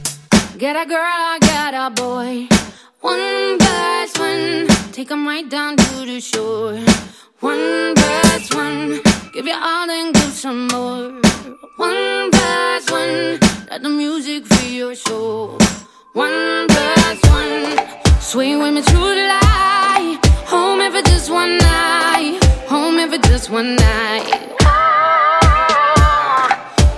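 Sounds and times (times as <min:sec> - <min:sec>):
mainstream pop music: 0:00.3 - 0:26.9.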